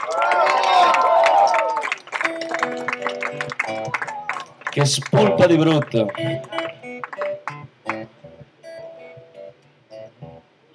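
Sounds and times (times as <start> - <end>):
audience applause for drummer: 0.0 - 8.1
speech: 4.8 - 6.6.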